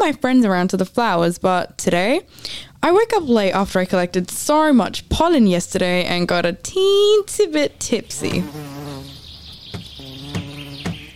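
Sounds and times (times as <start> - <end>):
speech: 0.0 - 8.7
bees buzzing near their hive: 8.0 - 11.1.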